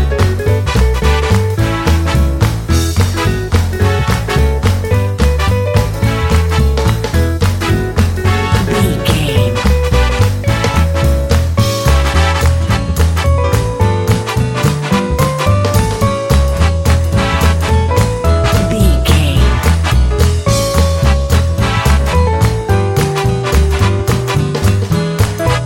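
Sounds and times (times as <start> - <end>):
happy swing music: 0.0 - 25.6.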